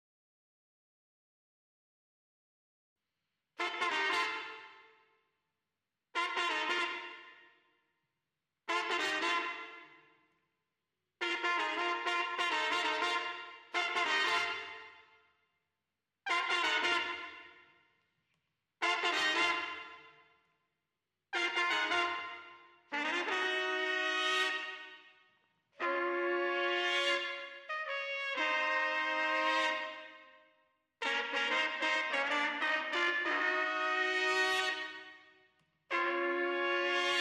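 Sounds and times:
trumpets: 0:03.6 - 0:04.9, 0:06.2 - 0:07.6, 0:08.7 - 0:10.0, 0:11.2 - 0:15.2, 0:16.3 - 0:17.8, 0:18.8 - 0:20.2, 0:21.4 - 0:25.2, 0:25.8 - 0:30.3, 0:31.0 - 0:37.2.

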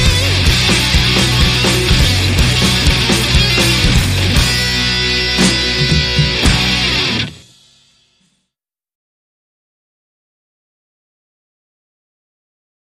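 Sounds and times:
lead guitar: 0:00.0 - 0:07.6.

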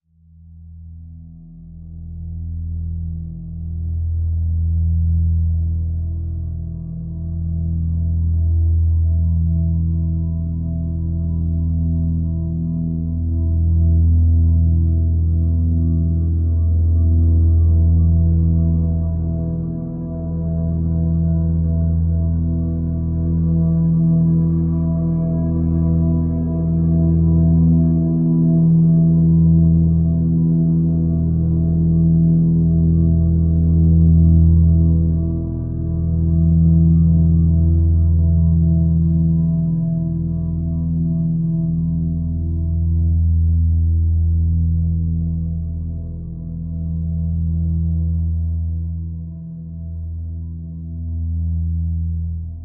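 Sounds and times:
drone on E: 0:01.9 - 0:52.6.

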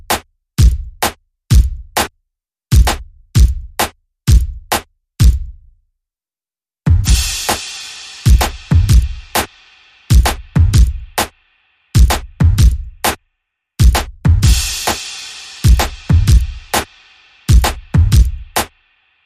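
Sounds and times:
drums: 0:02.8 - 0:05.5, 0:06.9 - 0:11.4, 0:12.0 - 0:13.2, 0:13.8 - 0:18.8.

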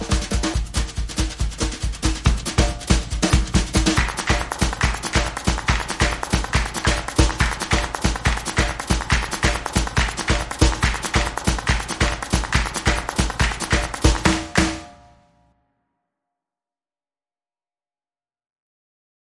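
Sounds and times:
drums: 0:00.0 - 0:15.2
claps: 0:02.6 - 0:15.0.

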